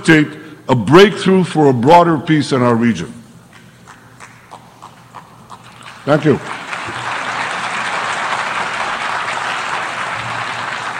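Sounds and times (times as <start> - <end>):
speech: 0.0 - 3.2, 6.0 - 6.6
audience applause: 5.7 - 10.9.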